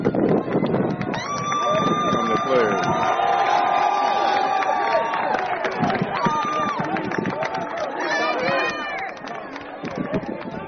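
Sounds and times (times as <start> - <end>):
Miami golf crowd cheering the Cadillac winner: 0.2 - 10.6.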